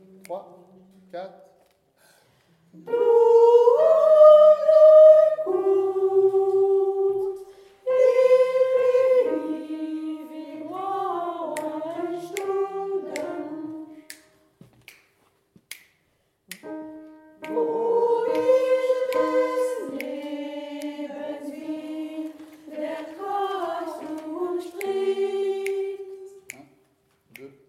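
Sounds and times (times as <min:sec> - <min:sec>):
soprano singing: 0:02.8 - 0:14.3, 0:16.6 - 0:26.5.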